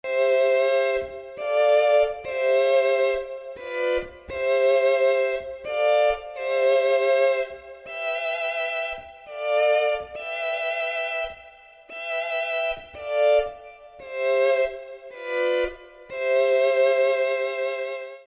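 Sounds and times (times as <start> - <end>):
strings: 0.0 - 18.2.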